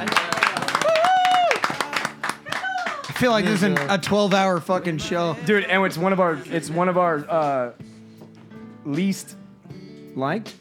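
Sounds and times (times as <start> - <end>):
laughter: 0.0 - 4.0, 5.1 - 7.3
applause: 0.0 - 4.2
speech: 3.2 - 7.9, 8.8 - 9.4, 10.2 - 10.5.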